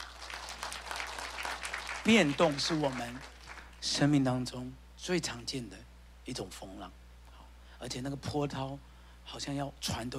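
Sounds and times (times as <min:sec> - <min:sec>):
audience clapping: 0:00.0 - 0:03.8
speech: 0:02.0 - 0:07.0, 0:07.8 - 0:10.1.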